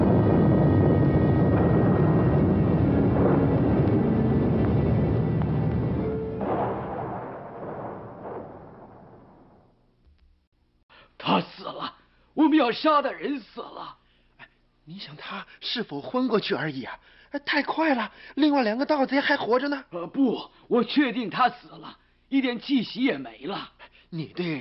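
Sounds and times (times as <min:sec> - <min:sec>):
thunder: 0:00.0 - 0:09.8
speech: 0:12.6 - 0:14.0, 0:14.9 - 0:24.5.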